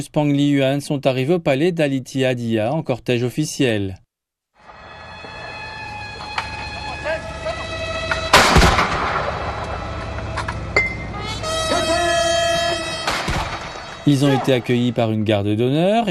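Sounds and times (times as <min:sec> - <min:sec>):
speech: 0:00.0 - 0:04.0, 0:14.1 - 0:16.0
steady sustained horn-like tones: 0:04.6 - 0:08.8, 0:09.5 - 0:15.2
heavy booming cannon salute blasts: 0:08.1 - 0:10.1, 0:12.9 - 0:14.2.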